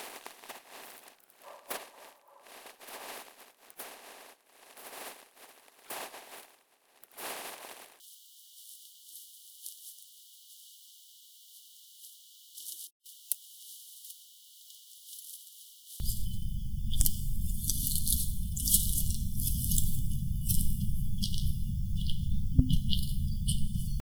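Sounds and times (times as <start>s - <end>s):
found object sounds: 16.0s - 24.0s.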